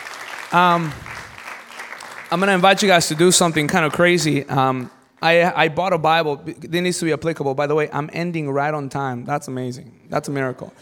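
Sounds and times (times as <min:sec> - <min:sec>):
round of applause: 0:00.0 - 0:04.9
speech: 0:00.5 - 0:01.1, 0:02.3 - 0:10.8.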